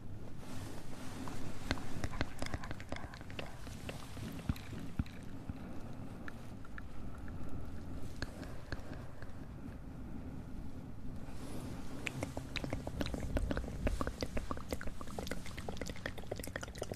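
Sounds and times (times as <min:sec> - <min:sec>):
soft low rumble: 0:00.0 - 0:16.9
tingly wet mouth clicks, pops and smacks: 0:01.7 - 0:05.6, 0:06.2 - 0:07.5, 0:08.1 - 0:09.4, 0:12.0 - 0:16.9.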